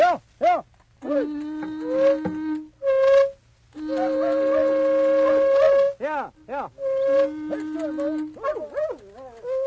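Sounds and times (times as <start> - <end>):
wavering rising-and-falling howls: 0.5 - 3.2, 3.8 - 6.0, 6.8 - 9.6
fox hunting horn being blown: 1.0 - 8.6.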